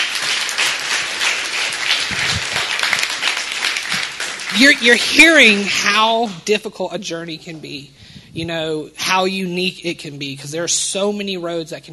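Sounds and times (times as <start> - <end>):
crowd applause: 0.0 - 5.7
speech: 4.6 - 11.9.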